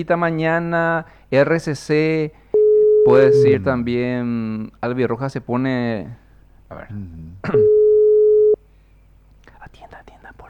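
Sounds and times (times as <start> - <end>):
speech: 0.0 - 2.4, 3.0 - 7.8
radio studio office telephone line tone as a call is placed: 2.6 - 3.6, 7.6 - 8.6.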